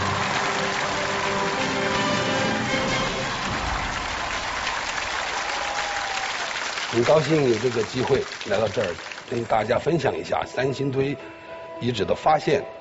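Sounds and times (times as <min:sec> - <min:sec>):
audience applause: 0:00.0 - 0:10.0
speech: 0:07.0 - 0:12.8.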